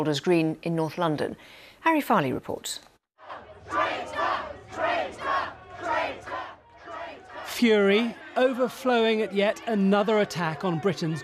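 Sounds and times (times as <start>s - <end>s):
speech: 0.0s - 2.9s, 7.6s - 11.2s
crowd booing and heckling the Prime Minister: 3.2s - 11.2s.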